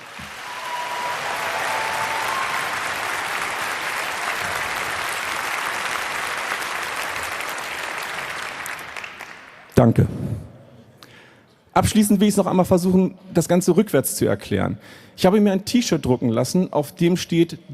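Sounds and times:
audience applause: 0.0s - 9.7s
speech: 9.8s - 10.2s, 11.8s - 17.7s.

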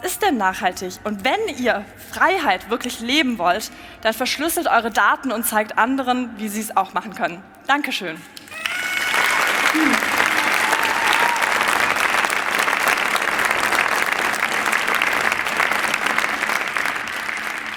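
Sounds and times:
speech: 0.0s - 8.4s, 9.7s - 10.1s
warm audience applause: 8.5s - 17.7s.

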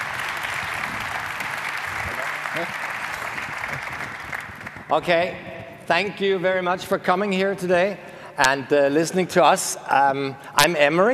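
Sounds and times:
audience applause: 0.0s - 5.0s
speech: 2.6s - 2.8s, 4.9s - 11.1s.

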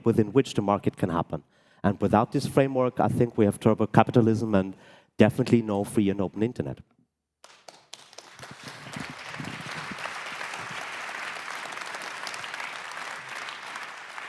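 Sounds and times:
speech: 0.0s - 6.9s
audience applause: 7.5s - 14.2s.

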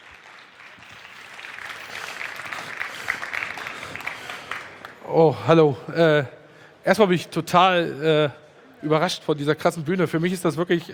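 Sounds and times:
audience applause: 0.0s - 5.0s
speech: 5.1s - 10.9s.

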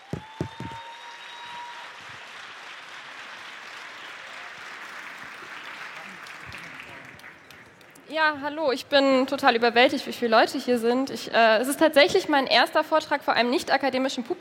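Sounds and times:
audience applause: 0.0s - 8.0s
speech: 8.1s - 14.3s.

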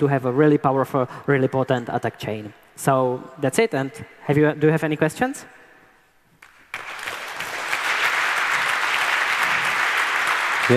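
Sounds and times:
speech: 0.0s - 5.6s
audience applause: 6.4s - 10.7s.

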